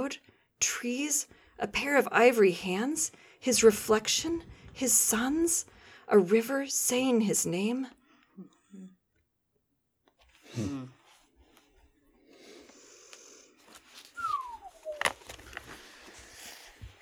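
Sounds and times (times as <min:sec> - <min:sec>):
speech: 0:00.1 - 0:09.0, 0:10.6 - 0:11.0
whistle: 0:14.2 - 0:15.2.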